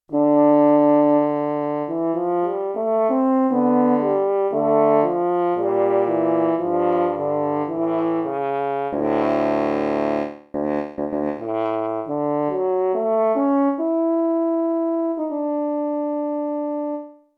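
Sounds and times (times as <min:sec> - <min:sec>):
horn: 0:00.1 - 0:17.3.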